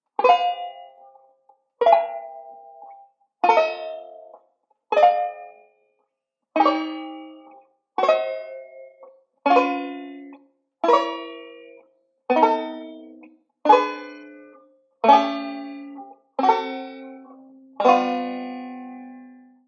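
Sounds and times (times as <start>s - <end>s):
banjo: 0.0s - 5.9s, 6.5s - 19.6s.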